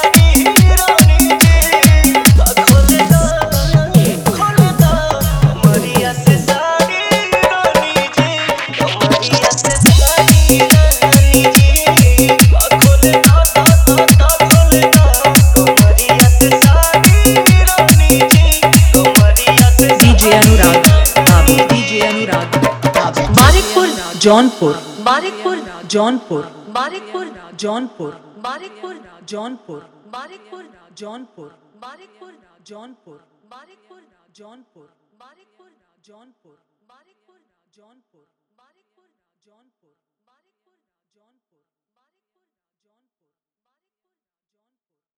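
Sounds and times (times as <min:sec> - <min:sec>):
Bhojpuri DJ song remix with hard dholak: 0:00.0 - 0:27.2.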